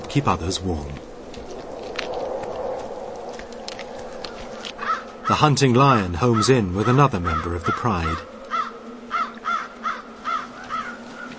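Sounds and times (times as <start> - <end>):
speech: 0.1 - 1.1, 5.3 - 8.3
ravens cawing: 3.5 - 11.3.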